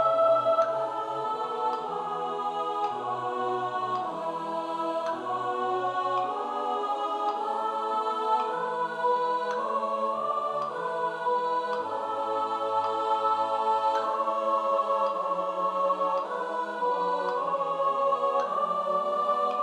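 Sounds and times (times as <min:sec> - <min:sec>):
soprano singing: 0:00.0 - 0:19.6.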